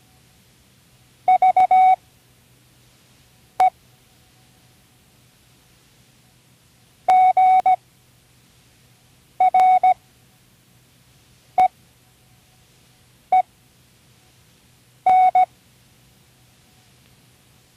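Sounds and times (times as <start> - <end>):
Morse code: 1.3 - 2.0, 7.1 - 7.8, 9.4 - 10.0, 15.1 - 15.5.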